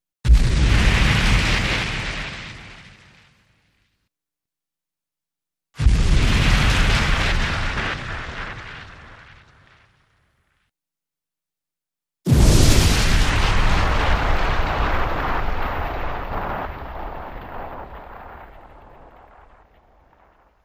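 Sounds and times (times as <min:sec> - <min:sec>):
explosive fire burst: 0:00.3 - 0:03.5, 0:05.8 - 0:10.2, 0:12.3 - 0:20.5.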